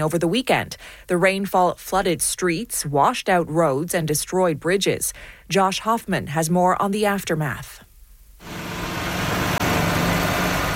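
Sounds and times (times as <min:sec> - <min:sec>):
speech: 0:00.0 - 0:08.6
bulldozers repairing damaged roadways: 0:08.4 - 0:10.7.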